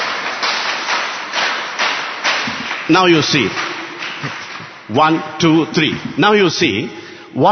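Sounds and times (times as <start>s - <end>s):
group clapping in unison: 0.0s - 5.2s
speech: 2.9s - 7.5s.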